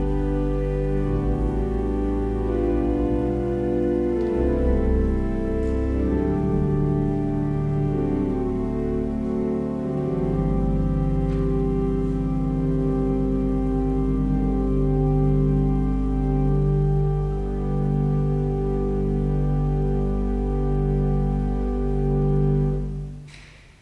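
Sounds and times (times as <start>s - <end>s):
organ music: 0.0s - 23.4s.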